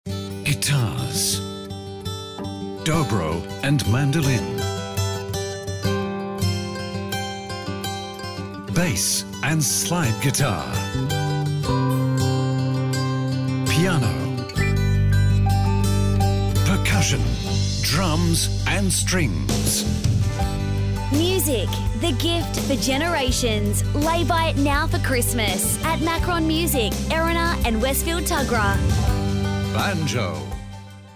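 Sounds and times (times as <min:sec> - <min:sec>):
guitar: 0:00.1 - 0:31.1.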